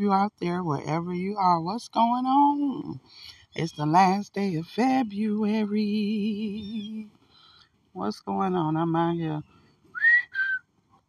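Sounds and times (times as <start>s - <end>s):
speech: 0.0s - 7.2s, 8.0s - 9.6s
faint chirp: 2.5s - 10.6s
man whistling to imitate birds: 9.9s - 10.7s.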